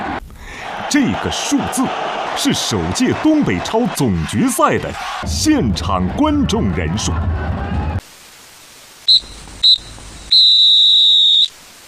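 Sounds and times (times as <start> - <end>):
speech: 0.9 - 7.8
referee's final whistle blasts: 9.1 - 11.6.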